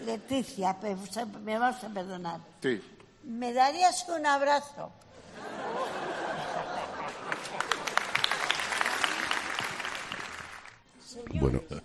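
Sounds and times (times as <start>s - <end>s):
speech: 0.1s - 5.5s, 11.1s - 11.8s
people laughing: 5.2s - 8.4s
audience applause: 7.1s - 10.8s.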